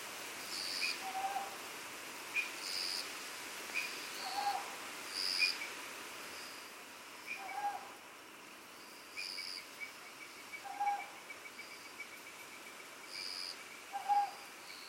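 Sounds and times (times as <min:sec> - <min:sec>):
background hiss: 0:00.0 - 0:14.8
owl hooting: 0:00.8 - 0:01.6, 0:03.8 - 0:04.8, 0:07.3 - 0:08.0, 0:10.6 - 0:11.2, 0:13.9 - 0:14.5.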